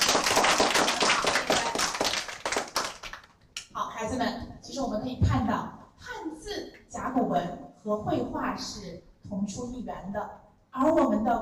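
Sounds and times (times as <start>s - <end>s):
group applause: 0.0s - 3.4s
speech: 4.0s - 11.4s.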